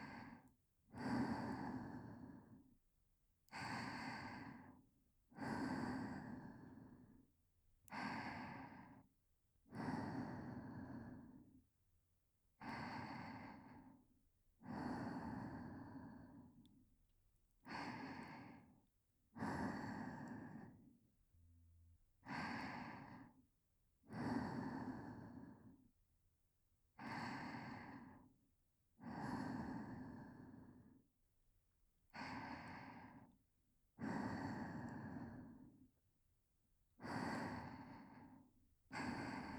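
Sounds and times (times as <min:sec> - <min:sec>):
whispered breathing: 0:00.0 - 0:02.7, 0:03.5 - 0:07.3, 0:07.9 - 0:11.7, 0:12.6 - 0:16.8, 0:17.6 - 0:21.0, 0:22.2 - 0:23.4, 0:24.0 - 0:25.9, 0:27.0 - 0:28.4, 0:29.0 - 0:31.2, 0:32.1 - 0:33.4, 0:34.0 - 0:35.9, 0:37.0 - 0:39.5.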